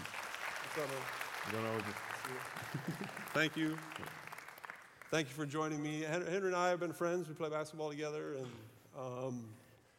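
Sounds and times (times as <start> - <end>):
audience applauding to welcome a guest onto a stage: 0.0 - 6.1
speech: 0.8 - 4.3, 5.1 - 9.6.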